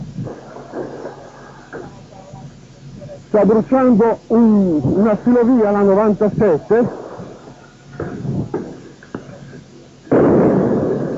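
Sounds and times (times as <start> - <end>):
bomb explosion during street riot: 0.1 - 2.0, 6.8 - 9.4, 10.1 - 11.1
speech: 3.3 - 7.0.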